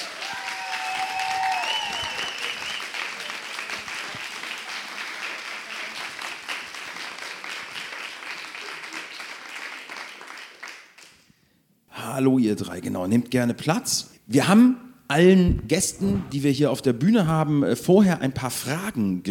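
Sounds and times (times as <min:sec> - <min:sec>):
audience applause: 0:00.0 - 0:11.1
speech: 0:12.2 - 0:19.2.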